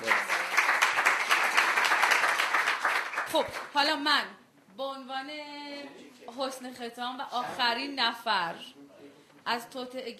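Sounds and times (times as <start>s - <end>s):
group clapping for a birthday: 0.0s - 3.9s
speech: 3.3s - 8.8s, 9.5s - 10.1s.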